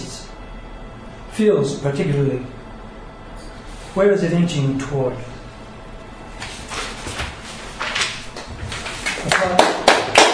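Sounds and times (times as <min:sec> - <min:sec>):
speech: 0:01.4 - 0:02.6, 0:04.0 - 0:05.3
audience applause after poem: 0:09.2 - 0:10.3.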